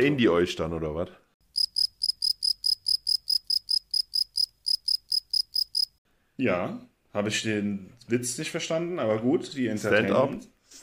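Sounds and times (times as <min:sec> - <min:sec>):
speech: 0:00.0 - 0:01.2, 0:06.4 - 0:10.8
crickets chirping: 0:01.5 - 0:06.0.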